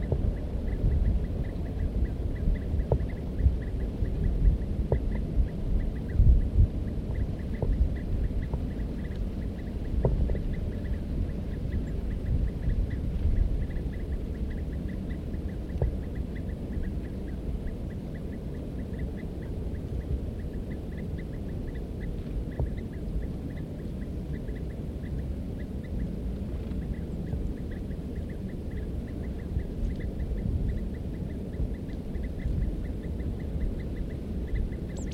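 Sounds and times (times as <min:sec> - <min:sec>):
birds calling: 0:00.0 - 0:35.1
steady low rumble: 0:00.0 - 0:35.1.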